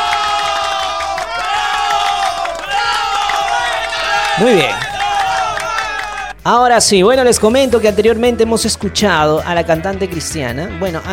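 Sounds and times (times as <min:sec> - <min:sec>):
audience applause: 0:00.0 - 0:06.4
speech: 0:04.4 - 0:04.8, 0:06.4 - 0:11.1.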